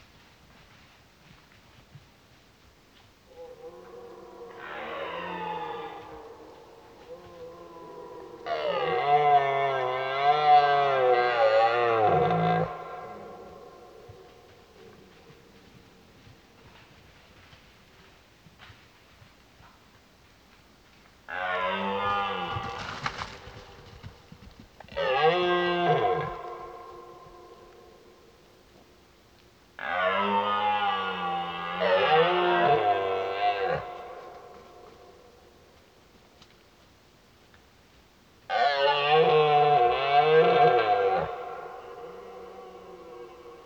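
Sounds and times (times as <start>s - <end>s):
red deer roaring: 3.4s - 15.2s, 21.3s - 23.8s, 24.9s - 27.9s, 29.8s - 34.5s, 38.5s - 43.6s.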